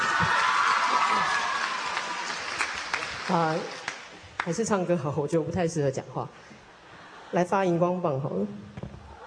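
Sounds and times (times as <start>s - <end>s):
audience applause: 0.0s - 4.6s
speech: 3.3s - 3.8s, 4.4s - 6.6s, 7.3s - 8.7s.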